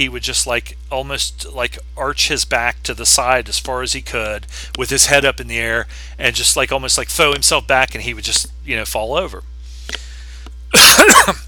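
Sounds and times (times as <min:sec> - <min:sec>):
speech: 0:00.0 - 0:10.0
harsh cough: 0:10.7 - 0:11.4.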